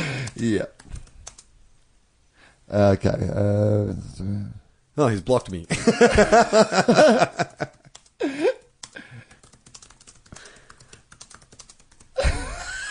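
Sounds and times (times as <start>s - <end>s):
typing a message on a computer keyboard: 0.1s - 1.5s, 7.3s - 12.2s
speech: 0.4s - 0.8s, 2.7s - 7.8s
laughter: 5.7s - 7.9s, 12.2s - 12.9s.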